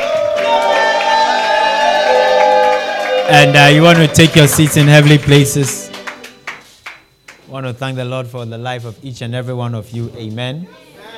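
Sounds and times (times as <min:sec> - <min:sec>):
audience shouting: 0:00.0 - 0:04.9
audience clapping: 0:00.0 - 0:07.5
speech: 0:03.3 - 0:05.8, 0:07.6 - 0:10.9.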